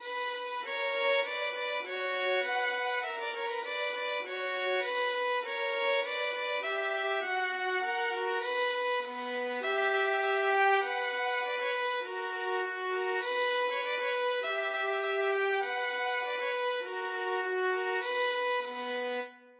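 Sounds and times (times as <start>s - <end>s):
violin duet: 0.0s - 19.5s.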